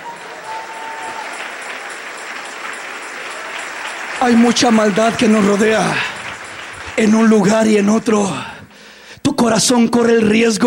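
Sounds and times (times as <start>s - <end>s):
applause: 0.0s - 8.6s
speech: 4.2s - 6.1s, 7.0s - 8.5s, 9.4s - 10.6s.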